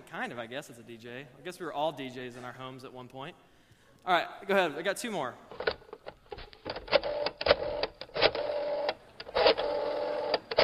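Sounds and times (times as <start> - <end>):
speech: 0.1 - 5.8
rotary phone dial turning and clicking: 5.6 - 10.6.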